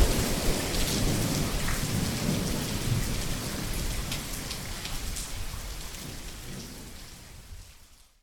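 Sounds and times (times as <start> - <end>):
thunder: 0.0 - 4.2
rain: 0.0 - 8.2.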